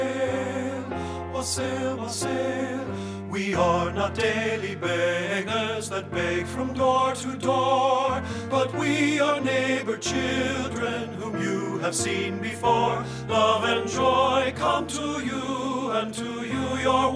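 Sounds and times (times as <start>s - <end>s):
ten men singing a carol: 0.0s - 17.1s.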